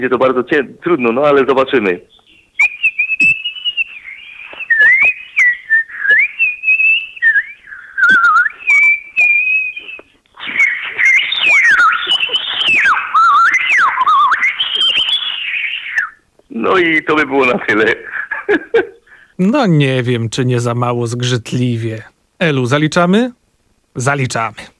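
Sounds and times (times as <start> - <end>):
speech: 0.0 - 2.2, 16.8 - 23.4, 24.0 - 24.7
person whistling an imitation of a skylark's song: 2.1 - 16.2
laughter: 9.8 - 15.4, 16.8 - 19.2.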